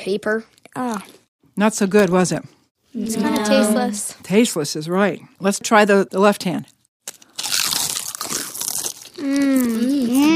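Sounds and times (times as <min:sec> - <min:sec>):
speech: 0:00.0 - 0:06.8, 0:09.2 - 0:10.3
salted potato chip being chewed: 0:07.0 - 0:10.3.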